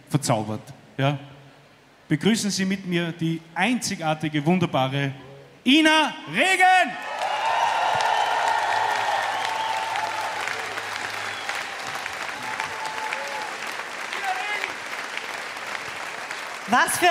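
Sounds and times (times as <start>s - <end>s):
speech: 0.1s - 1.3s, 2.1s - 7.1s, 16.7s - 17.1s
audience applause: 7.0s - 17.1s.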